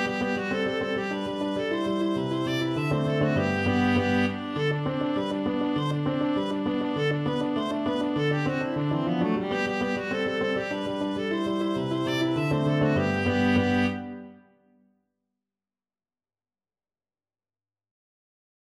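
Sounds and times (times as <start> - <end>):
viola playing a hornpipe: 0.0 - 14.4.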